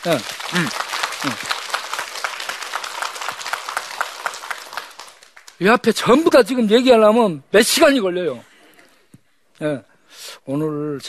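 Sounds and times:
speech: 0.0s - 1.7s, 5.6s - 8.5s, 9.6s - 11.0s
applause: 0.0s - 5.9s.

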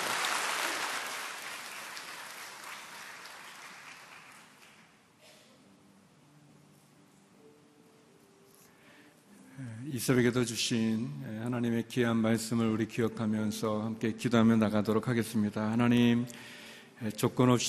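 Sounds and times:
audience applause: 0.0s - 4.9s
speech: 10.0s - 17.6s.

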